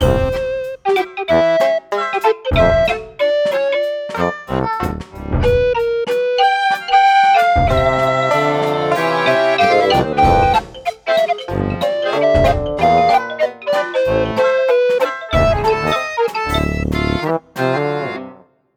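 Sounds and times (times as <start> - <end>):
beats: 0.0 - 17.9.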